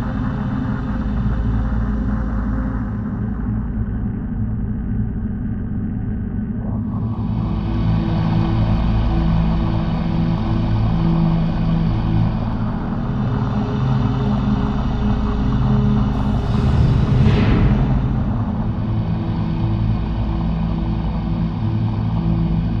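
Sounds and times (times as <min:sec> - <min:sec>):
ambience: 0:00.0 - 0:22.7.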